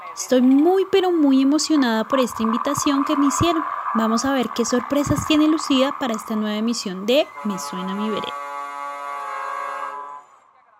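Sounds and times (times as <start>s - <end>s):
speech: 0.2s - 8.4s
chiva bus horn blast: 7.3s - 10.4s.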